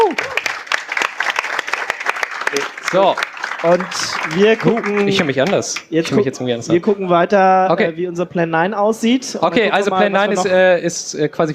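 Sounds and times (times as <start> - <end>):
applause: 0.0 - 5.9
speech: 2.5 - 11.5.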